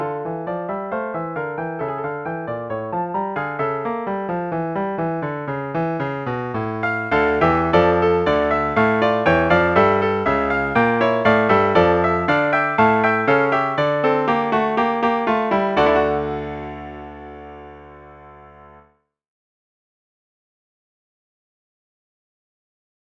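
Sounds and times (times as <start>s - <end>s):
fugue: 0.1s - 18.0s.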